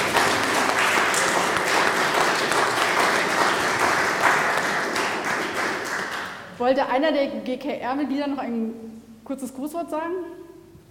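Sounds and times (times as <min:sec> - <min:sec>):
audience applauding new church members: 0:00.0 - 0:06.5
speech: 0:06.6 - 0:10.4.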